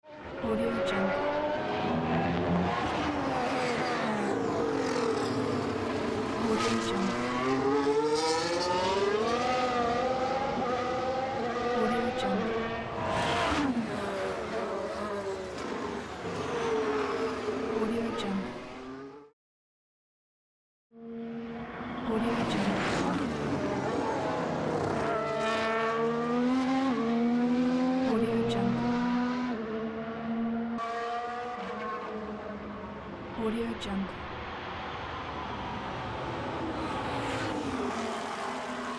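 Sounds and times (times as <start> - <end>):
Formula 1 engine testing: 0.1 - 19.3, 21.0 - 33.3, 34.4 - 38.9.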